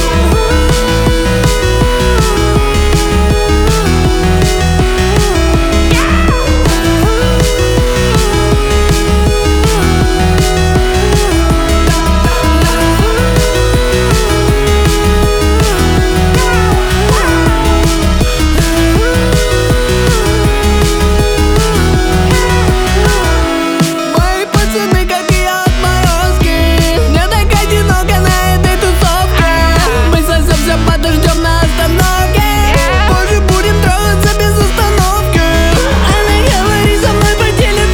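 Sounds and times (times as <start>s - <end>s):
heavy metal music: 0.0s - 37.9s.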